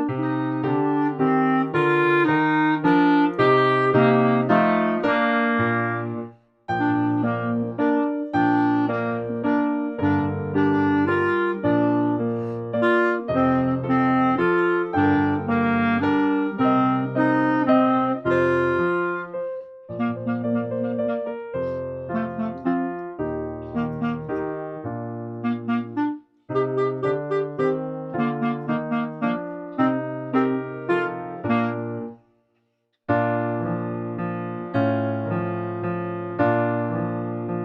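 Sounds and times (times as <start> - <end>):
clarinet melody: 0.0 - 32.3, 33.1 - 37.6.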